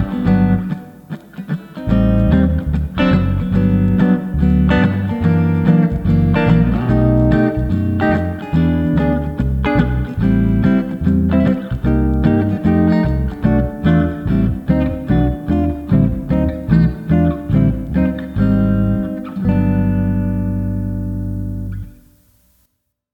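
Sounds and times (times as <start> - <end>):
backing track in G in first position: 0.0 - 22.0.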